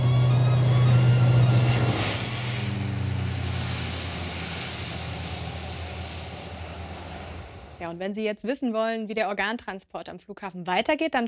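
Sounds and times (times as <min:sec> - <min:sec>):
small propeller airplane engine roaring during takeoff: 0:00.0 - 0:07.9
speech: 0:07.8 - 0:11.2.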